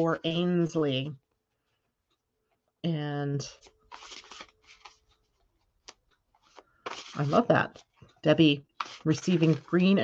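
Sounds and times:
speech: 0:00.0 - 0:01.2, 0:02.8 - 0:04.4, 0:07.2 - 0:10.0
deck of Pleiadian oracle cards being shuffled: 0:03.6 - 0:05.2, 0:05.8 - 0:08.0, 0:08.8 - 0:10.0.

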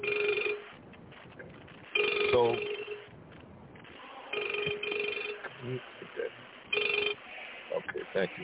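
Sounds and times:
telephone ringing: 0:00.0 - 0:00.7, 0:01.9 - 0:03.1, 0:04.3 - 0:05.5, 0:06.7 - 0:07.2
speech: 0:08.2 - 0:08.4.

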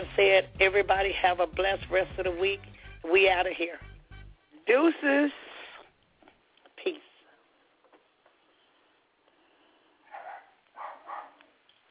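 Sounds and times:
speech: 0:00.0 - 0:03.9, 0:04.7 - 0:05.5, 0:06.8 - 0:07.0
dog barking: 0:10.0 - 0:11.5.

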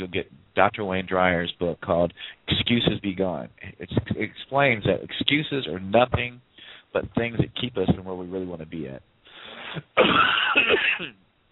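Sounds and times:
speech: 0:00.0 - 0:09.1, 0:09.7 - 0:11.2
cough: 0:10.0 - 0:11.2.

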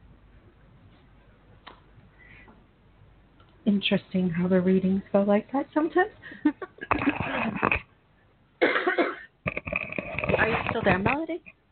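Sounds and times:
speech: 0:03.7 - 0:07.8, 0:10.8 - 0:11.6
cough: 0:08.6 - 0:10.8.

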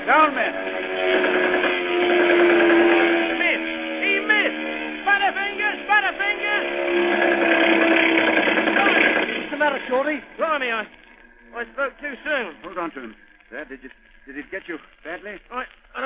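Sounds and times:
warplanes circling and roaring in for the kill: 0:00.0 - 0:15.4
speech: 0:00.1 - 0:00.7, 0:13.0 - 0:15.7.

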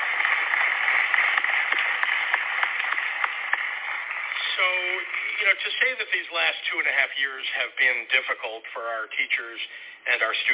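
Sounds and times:
audience applause: 0:00.0 - 0:06.6
speech: 0:05.4 - 0:10.5.

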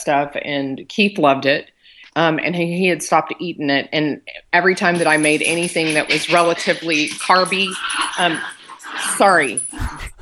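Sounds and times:
speech: 0:00.0 - 0:10.1
dogs whimpering: 0:05.0 - 0:10.2.

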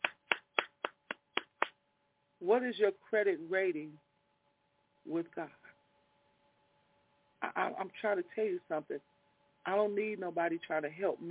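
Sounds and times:
hand clapping: 0:00.0 - 0:01.8
speech: 0:02.4 - 0:04.1, 0:05.0 - 0:05.6, 0:07.4 - 0:11.2.

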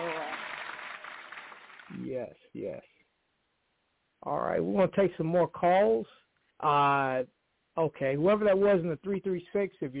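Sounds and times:
faint canned applause sound effect: 0:00.0 - 0:02.0
speech: 0:01.9 - 0:03.0, 0:04.2 - 0:09.9.

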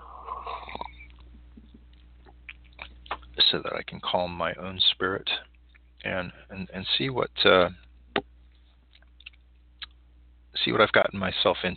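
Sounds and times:
person sipping tea: 0:00.0 - 0:01.3
speech: 0:03.5 - 0:07.8, 0:10.6 - 0:11.7.

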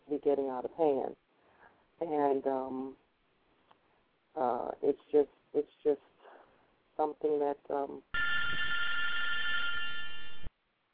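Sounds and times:
speech: 0:00.2 - 0:01.2, 0:02.0 - 0:03.0, 0:04.4 - 0:06.1, 0:07.0 - 0:08.1
telephone ringing for an incoming call-in caller: 0:08.2 - 0:10.5.

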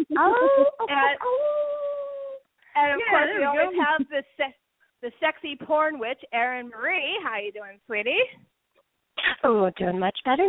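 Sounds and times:
person imitating a howl: 0:00.0 - 0:02.4
speech: 0:00.1 - 0:01.6, 0:02.8 - 0:08.5, 0:09.2 - 0:10.4.

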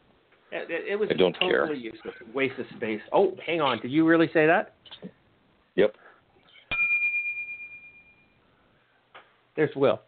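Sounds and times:
speech: 0:00.5 - 0:05.2, 0:05.8 - 0:06.0, 0:09.6 - 0:10.0
single bright bell strike: 0:06.7 - 0:08.4.

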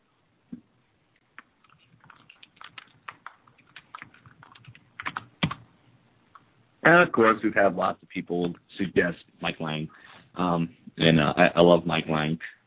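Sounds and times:
typing on a computer keyboard: 0:01.4 - 0:05.6
speech: 0:06.9 - 0:12.6.

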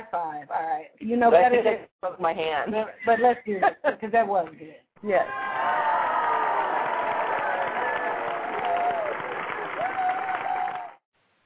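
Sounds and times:
speech: 0:00.1 - 0:06.0
audience applause: 0:05.3 - 0:11.0.

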